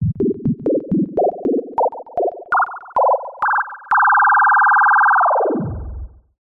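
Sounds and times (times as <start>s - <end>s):
synth robot wobble powering up and down: 0.1s - 6.2s.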